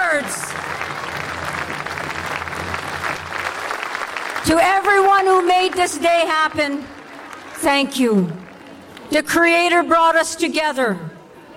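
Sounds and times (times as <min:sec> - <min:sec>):
applause: 0:00.0 - 0:09.2
speech: 0:04.4 - 0:07.0, 0:07.6 - 0:08.4, 0:09.1 - 0:11.1.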